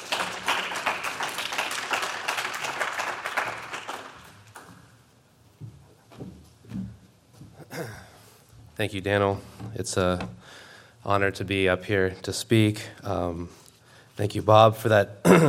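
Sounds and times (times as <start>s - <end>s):
audience applause: 0.0s - 4.8s
speech: 8.8s - 10.4s, 11.0s - 13.6s, 14.2s - 15.4s.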